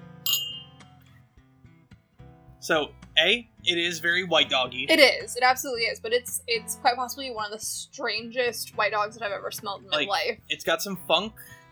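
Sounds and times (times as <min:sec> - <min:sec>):
glasses clinking in a toast: 0:00.3 - 0:00.8
speech: 0:02.6 - 0:11.6.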